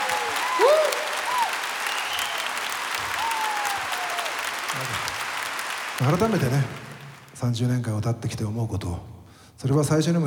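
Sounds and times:
faint whistles or cheers: 0.0s - 4.6s
concert audience applause: 0.0s - 7.4s
speech: 6.0s - 6.8s, 7.4s - 10.2s.

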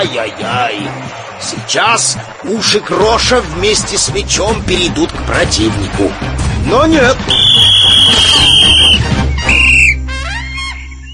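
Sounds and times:
speech: 0.1s - 9.3s
referee's whistle: 7.3s - 11.1s.

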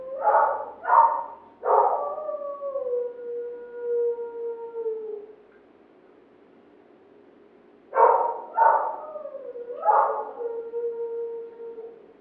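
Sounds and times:
dog barking and howling: 0.0s - 3.1s, 8.0s - 12.0s.

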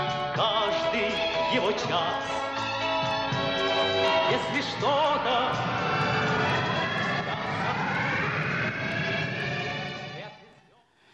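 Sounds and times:
spacecraft engines starting at launch: 0.0s - 10.6s
speech: 0.4s - 3.2s, 4.3s - 6.0s.

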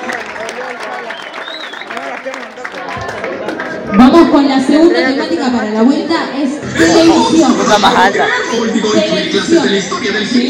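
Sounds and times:
audience applause at a live event in Argentina: 0.0s - 4.0s
speech: 3.9s - 10.4s
laughter: 6.6s - 10.0s.

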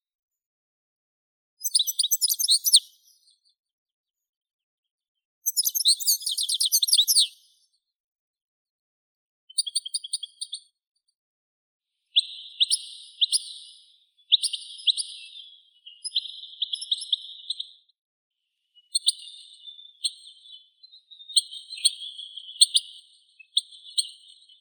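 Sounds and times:
European goldfinch Carduelis carduelis singing: 1.6s - 3.6s, 5.4s - 7.7s, 9.5s - 10.7s, 12.1s - 17.9s, 18.6s - 24.5s.

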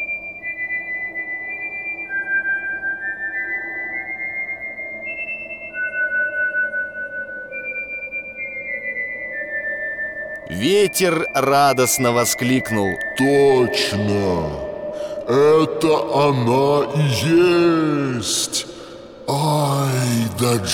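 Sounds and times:
whistled tune: 0.0s - 15.3s
speech: 10.5s - 20.7s.

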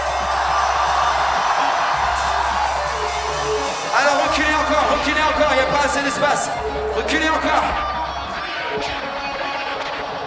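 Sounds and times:
crowd shouting and cheering: 0.0s - 10.2s
speech: 5.7s - 7.9s.

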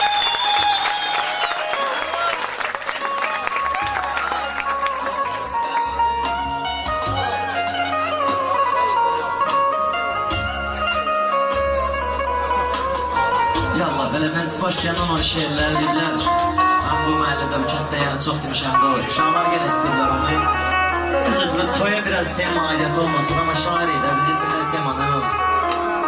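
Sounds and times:
audience applause at a wedding celebration: 0.0s - 6.1s
loud music at a wedding celebration: 0.0s - 26.0s
speech: 14.6s - 16.4s, 17.1s - 25.5s.

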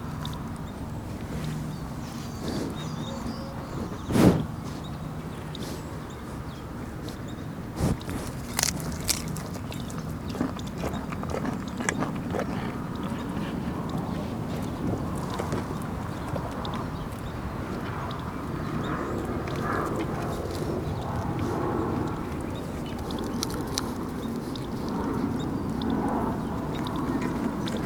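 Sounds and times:
sheep grazing, crunching and chewing grass: 0.0s - 27.8s.

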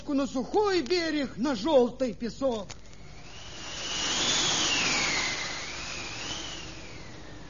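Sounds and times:
speech: 0.1s - 2.8s
strong wind blowing: 3.1s - 7.4s.

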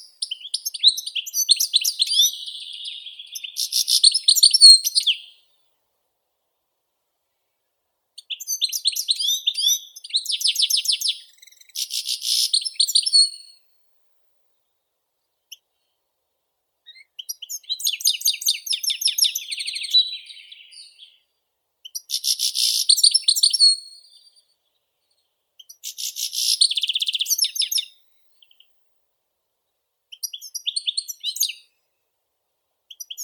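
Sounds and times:
European goldfinch song: 0.0s - 5.5s, 8.2s - 13.6s, 16.8s - 28.8s, 30.1s - 31.8s, 32.9s - 33.2s.

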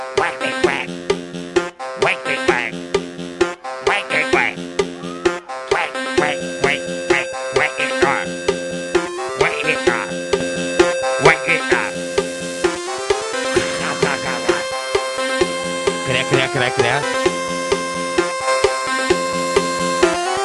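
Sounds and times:
bright upbeat backing music: 0.0s - 20.4s
voice singing imitated duck quacks: 0.1s - 1.0s, 2.0s - 2.8s, 3.8s - 8.3s, 9.4s - 10.1s, 11.2s - 11.9s
laughter: 13.5s - 14.9s.

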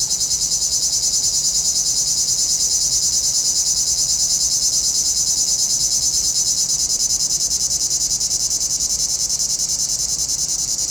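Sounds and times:
cicadas buzzing in a dense high chorus in a pinewood: 0.0s - 10.9s.

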